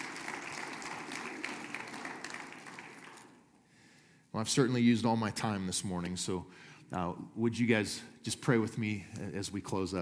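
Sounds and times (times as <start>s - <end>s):
church congregation applauding after a prayer: 0.0s - 3.6s
speech: 4.4s - 9.9s.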